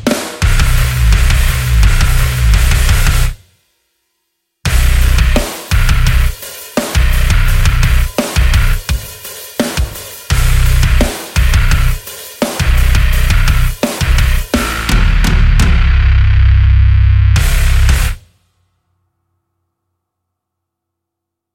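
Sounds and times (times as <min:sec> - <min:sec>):
bass: 0:00.0 - 0:03.4, 0:04.7 - 0:06.4, 0:07.0 - 0:08.9, 0:10.3 - 0:12.0, 0:12.6 - 0:18.2.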